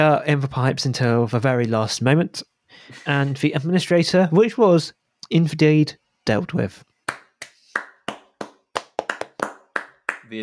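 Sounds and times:
speech: 0:00.0 - 0:06.9
round of applause, hands clapping: 0:07.1 - 0:10.4.

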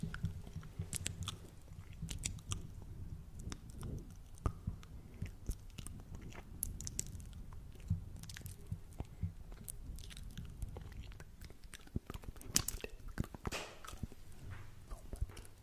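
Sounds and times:
wet chewing and biting mouth sounds: 0:00.0 - 0:15.6.

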